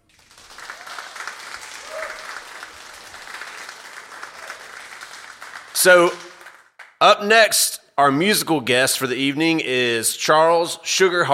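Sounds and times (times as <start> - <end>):
audience applause: 0.0 - 7.0
speech: 5.8 - 6.2, 7.0 - 11.3.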